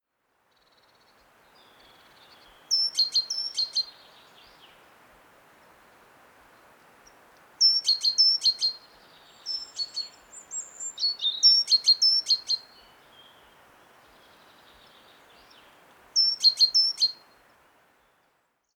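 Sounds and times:
faint hiss: 0:00.0 - 0:18.7
great tit calling: 0:02.7 - 0:03.9, 0:07.6 - 0:08.8, 0:09.4 - 0:12.7, 0:16.2 - 0:17.2.

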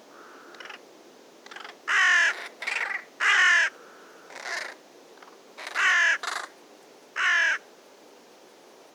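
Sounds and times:
carrion crow Corvus corone cawing: 0:00.1 - 0:00.8, 0:01.5 - 0:04.8, 0:05.6 - 0:06.5, 0:07.2 - 0:07.6.

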